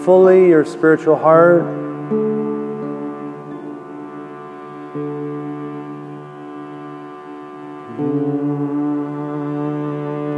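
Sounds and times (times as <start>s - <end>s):
speech: 0.0s - 2.2s
person meditative humming: 0.0s - 10.3s.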